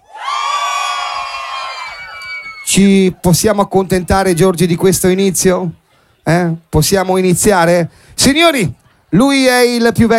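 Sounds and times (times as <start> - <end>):
audience screaming and roaring at a dance party on the host's cue: 0.0 - 2.8
speech: 2.7 - 10.1.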